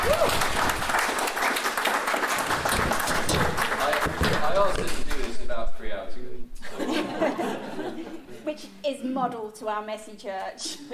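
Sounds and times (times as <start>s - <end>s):
round of applause: 0.0s - 5.4s
laughter: 6.6s - 8.5s
speech: 8.6s - 10.9s.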